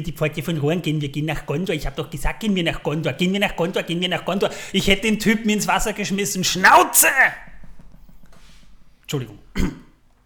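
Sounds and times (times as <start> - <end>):
speech: 0.0 - 7.5, 9.1 - 9.8
sneeze: 9.5 - 10.0.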